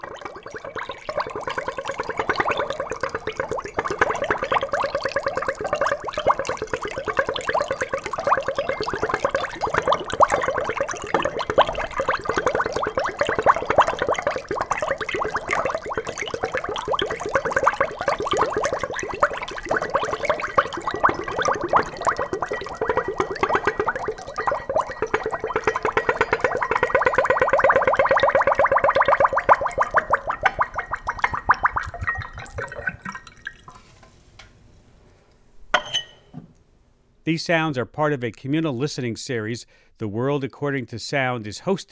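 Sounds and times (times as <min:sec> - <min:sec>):
liquid emptying from a funnel: 0:00.0 - 0:34.0
speech: 0:37.4 - 0:41.9.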